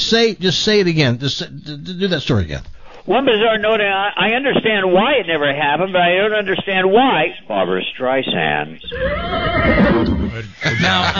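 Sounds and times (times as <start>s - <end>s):
speech: 0.1s - 11.1s
horse neigh sound effect: 8.8s - 10.6s
laughter: 9.9s - 11.1s.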